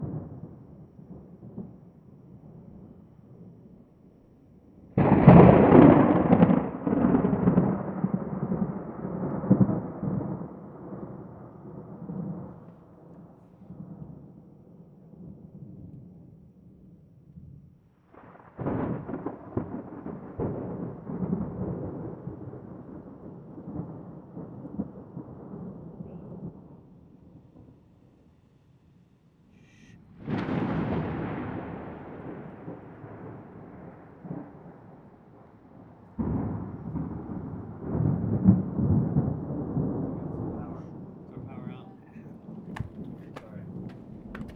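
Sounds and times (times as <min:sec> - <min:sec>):
super thunder: 0:00.0 - 0:03.7, 0:04.7 - 0:13.1, 0:18.0 - 0:27.8, 0:29.7 - 0:41.2.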